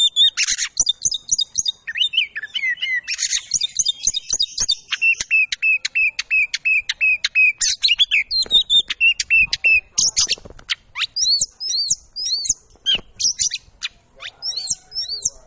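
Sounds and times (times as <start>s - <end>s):
Oriental magpie-robin song: 0.0s - 15.4s.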